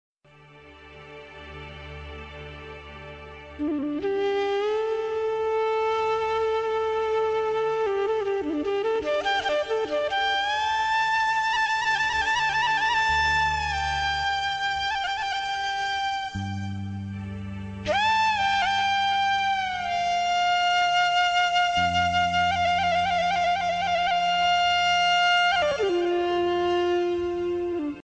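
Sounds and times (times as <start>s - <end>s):
flute rhythm: 2.2s - 28.0s.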